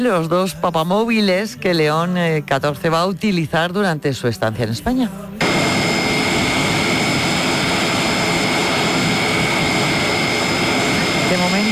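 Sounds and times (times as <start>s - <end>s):
speech: 0.0s - 5.3s
air force transport plane landing in Madrid, jet engine roar: 5.4s - 11.6s.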